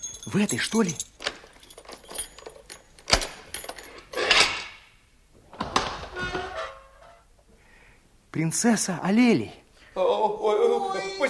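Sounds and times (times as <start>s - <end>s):
keys jangling as they are lifted from sleeping guards: 0.0s - 4.2s
speech: 0.2s - 1.1s, 8.4s - 11.2s.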